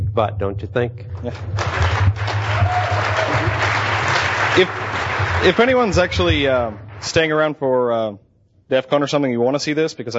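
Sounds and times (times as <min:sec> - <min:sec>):
constant low hum: 0:00.0 - 0:07.6
speech: 0:00.2 - 0:03.6, 0:04.6 - 0:10.1
audience applauding presenters at a conference: 0:01.2 - 0:07.5.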